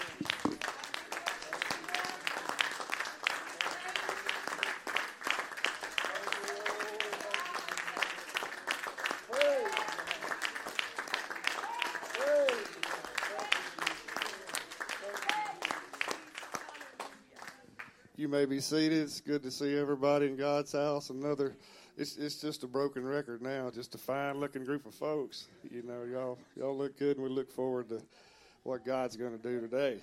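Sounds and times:
congregation at a Sunday service clapping hands in praise: 0.0s - 18.0s
speech: 18.2s - 30.0s.

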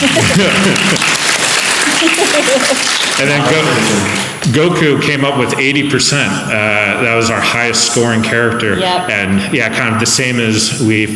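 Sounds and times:
speech: 0.0s - 1.1s, 2.0s - 11.1s
applause: 0.0s - 4.6s
laughter: 0.0s - 11.1s.

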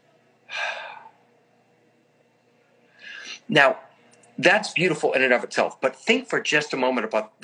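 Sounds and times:
airy breath imitating pronunciation of the divine name: 0.5s - 1.2s, 2.9s - 3.5s
speech: 3.5s - 3.8s, 4.4s - 7.4s.

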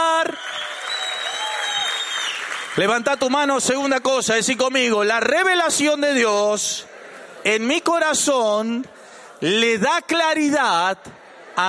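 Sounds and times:
audience applauding: 0.0s - 4.0s
speech: 2.8s - 11.6s.

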